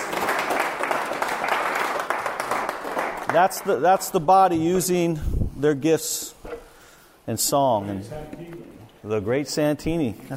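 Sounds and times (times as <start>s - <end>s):
audience applause: 0.0s - 3.7s
speech: 3.3s - 6.4s, 7.3s - 10.3s.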